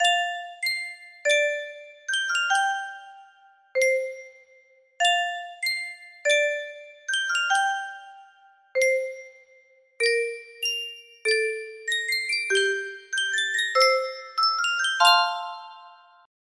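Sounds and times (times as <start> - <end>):
music box: 0.0 - 16.3.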